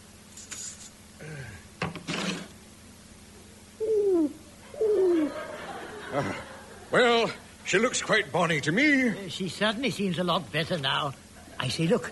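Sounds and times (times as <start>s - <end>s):
pigeon cooing: 3.8s - 6.5s
laughter: 4.6s - 7.4s
speech: 7.0s - 12.0s.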